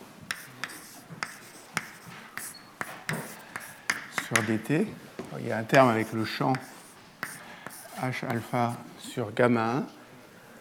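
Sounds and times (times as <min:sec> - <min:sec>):
writing an equation on a board during a physics lecture: 0:00.3 - 0:04.6, 0:05.8 - 0:08.9
speech: 0:04.3 - 0:06.7, 0:08.0 - 0:10.0.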